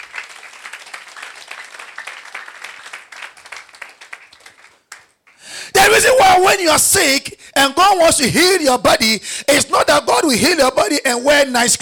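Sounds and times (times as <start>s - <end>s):
audience clapping: 0.0s - 5.5s
speech: 5.8s - 11.8s.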